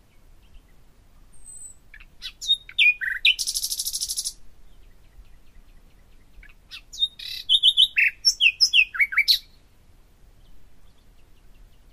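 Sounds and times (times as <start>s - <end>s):
common nightingale singing: 1.4s - 4.4s, 6.7s - 9.6s.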